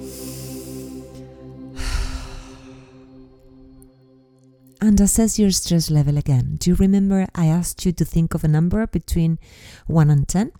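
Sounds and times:
deep breath in through the nose and out through the mouth: 0.0 - 3.7, 9.4 - 9.9
sustained musical tones: 0.0 - 5.1
speech: 4.8 - 10.5.

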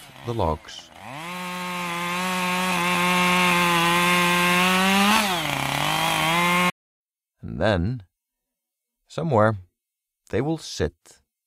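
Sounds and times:
chainsaw cutting through a tree trunk: 0.0 - 6.7
speech: 0.2 - 0.9, 7.6 - 8.1, 9.1 - 9.7, 10.3 - 11.2.

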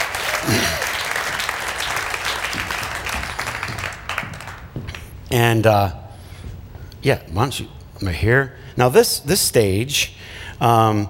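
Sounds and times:
audience clapping: 0.0 - 5.3
speech: 5.3 - 6.0, 7.0 - 11.0.

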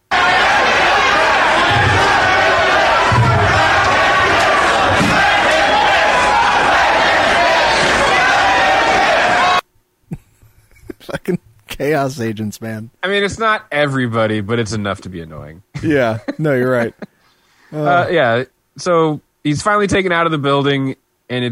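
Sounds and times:
wrestling fans chanting in arena: 0.0 - 9.6
speech: 11.8 - 17.1, 17.7 - 21.5.

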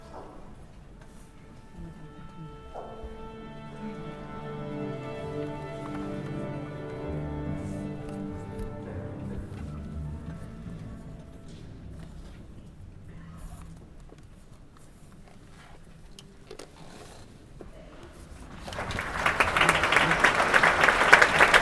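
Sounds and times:
orchestra tuning in NYC: 0.0 - 13.6, 18.9 - 21.6.

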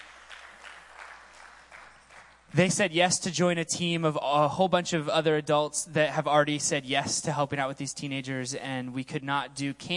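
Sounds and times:
soft group applause for new volunteer team members: 0.0 - 2.5
speech: 2.6 - 9.9.

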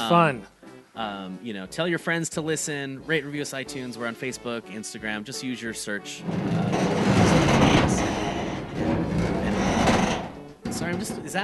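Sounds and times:
speech: 0.0 - 8.3, 10.8 - 11.4
loud metal creaking and grinding: 6.1 - 11.4.

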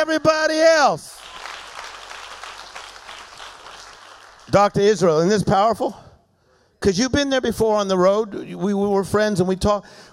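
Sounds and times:
speech: 0.0 - 1.2, 4.5 - 6.0, 6.8 - 10.1
audience clapping hands: 1.1 - 5.0.

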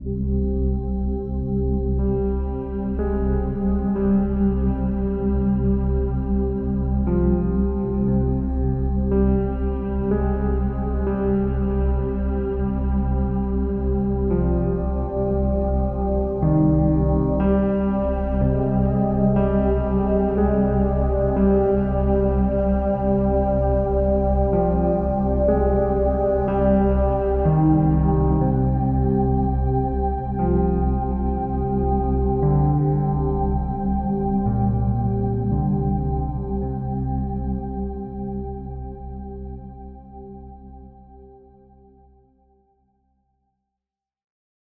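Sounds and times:
sad reflective drama music: 0.0 - 42.0.

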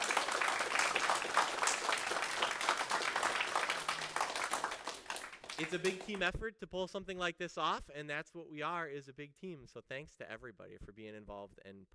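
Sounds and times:
audience applause: 0.0 - 6.2
speech: 5.6 - 11.9.

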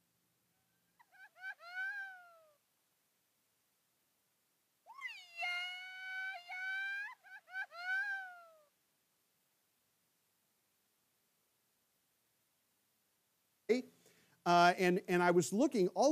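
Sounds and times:
Mexican grito traditional shout of joy: 1.1 - 2.5, 4.9 - 8.6
speech: 13.7 - 16.1.

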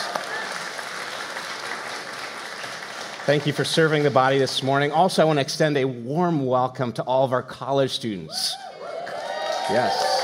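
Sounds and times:
audience applause: 0.0 - 4.9, 8.8 - 10.2
speech: 3.3 - 8.7, 9.7 - 10.2.

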